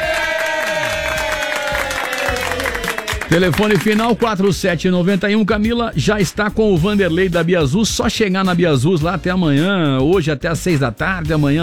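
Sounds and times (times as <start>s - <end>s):
cheering: 0.0s - 4.2s
applause: 0.0s - 4.3s
speech: 3.3s - 11.6s.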